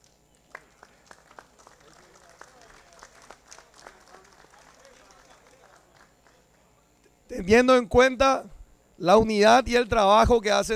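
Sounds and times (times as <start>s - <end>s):
assembly applauding: 0.0s - 6.7s
speech: 7.3s - 10.7s.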